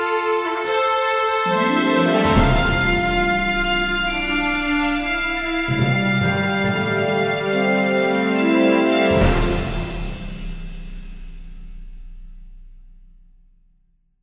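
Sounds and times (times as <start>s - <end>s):
adventure jingle: 0.2s - 11.2s.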